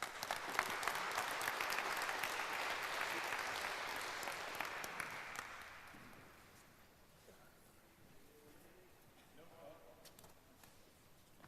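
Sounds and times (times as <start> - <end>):
audience applause: 0.0 - 6.4.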